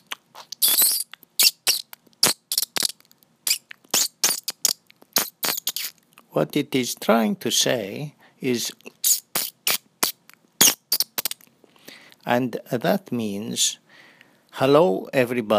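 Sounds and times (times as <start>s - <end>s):
strange bird squeaks and chirps: 0.4s - 6.0s
speech: 6.3s - 8.9s, 12.3s - 13.8s, 14.6s - 15.5s.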